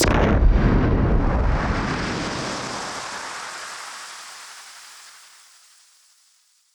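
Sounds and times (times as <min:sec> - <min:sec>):
noise bomb: 0:00.0 - 0:03.5.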